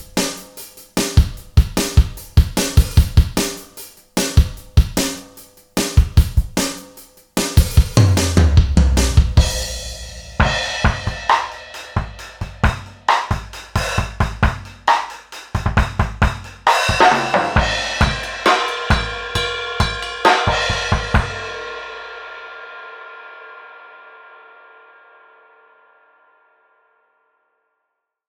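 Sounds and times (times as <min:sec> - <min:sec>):
vintage drum kits: 0:00.0 - 0:22.4.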